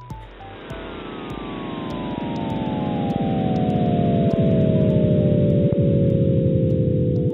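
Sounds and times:
Big Bang vibrations shifted into audible pitch: 0.0s - 7.3s.

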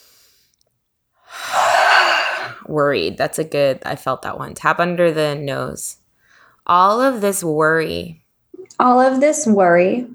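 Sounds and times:
deep breath inhale: 1.3s - 2.7s, 6.2s - 6.6s
speech: 2.7s - 6.0s, 6.6s - 10.1s.

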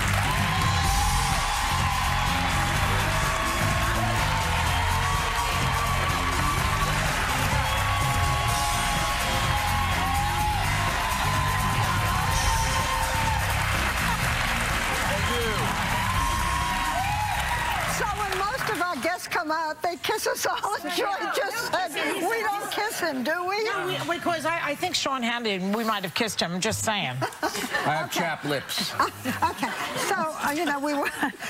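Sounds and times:
studio audience applause on a talk show: 0.0s - 19.5s
speech: 19.8s - 31.4s
laughter: 27.1s - 31.4s.

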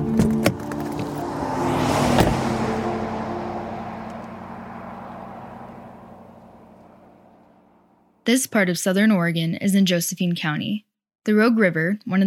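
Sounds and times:
car engine humming while pulling over and parking: 0.0s - 8.1s
speech: 8.3s - 12.2s.

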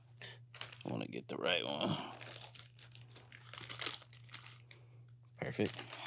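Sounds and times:
faint steady hum: 0.0s - 6.0s
crinkly bag of shrimp-flavored chips rustling as a hand grabs chips: 0.5s - 0.9s, 2.1s - 4.8s, 5.4s - 6.0s
speech: 0.8s - 2.2s, 5.5s - 5.9s.

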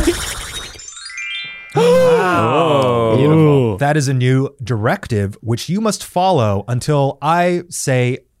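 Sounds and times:
chime sound effect: 0.6s - 2.8s
speech: 1.8s - 8.3s.

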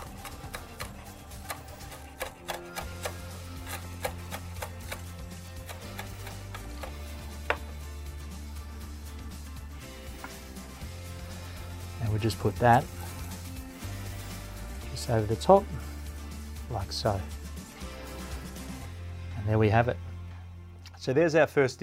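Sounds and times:
seaweed paper being cut: 0.0s - 6.9s
steady low musical backdrop: 0.0s - 21.8s
speech: 12.2s - 13.0s, 15.1s - 15.9s, 16.7s - 17.4s, 19.5s - 20.0s, 21.0s - 21.8s.

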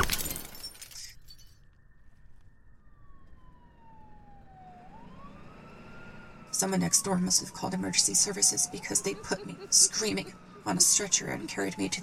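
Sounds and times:
mirror glass shattering from a punch: 0.0s - 1.6s
speech: 6.6s - 12.0s
laughter: 7.8s - 11.8s.

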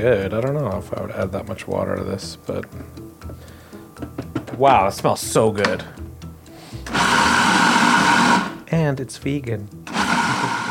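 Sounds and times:
speech: 0.0s - 6.0s, 8.7s - 9.9s
blender blending soaked lentils into batter: 6.8s - 8.7s, 9.8s - 10.6s.

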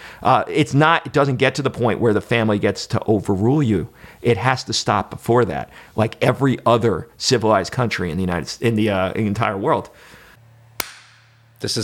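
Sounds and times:
speech: 0.2s - 10.2s, 11.6s - 11.8s
slow clap: 10.8s - 11.5s.

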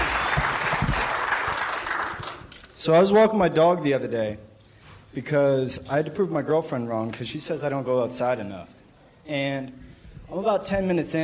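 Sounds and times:
audience applause: 0.0s - 2.5s
speech: 2.8s - 4.5s, 5.2s - 11.2s.

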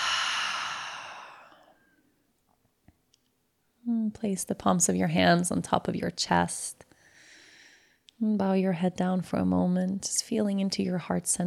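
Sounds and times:
deep full exhale through the open mouth: 0.0s - 1.7s
speech: 4.1s - 6.8s, 8.2s - 11.4s.

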